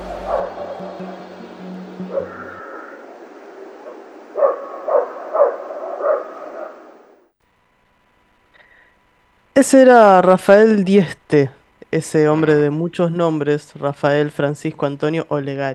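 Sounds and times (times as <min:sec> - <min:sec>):
dogs barking in the distance on a full-moon night: 0:03.8 - 0:07.2
speech: 0:09.6 - 0:15.7.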